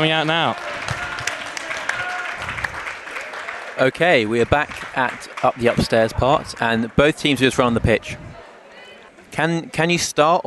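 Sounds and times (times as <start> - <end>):
speech: 0.0 - 0.8, 3.8 - 8.2, 9.4 - 10.4
rapturous applause: 0.0 - 8.2.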